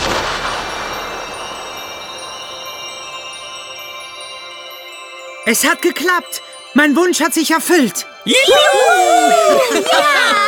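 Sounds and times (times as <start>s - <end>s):
fireworks exploding: 0.0s - 3.4s
speech: 5.5s - 10.4s
laughter: 8.3s - 10.4s.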